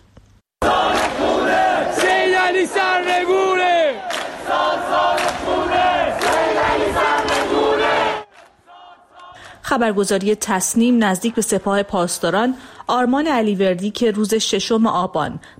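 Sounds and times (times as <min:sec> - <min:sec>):
night protest crowd chanting anti-government slogans: 0:00.6 - 0:09.5, 0:10.7 - 0:12.0
speech: 0:09.7 - 0:15.5.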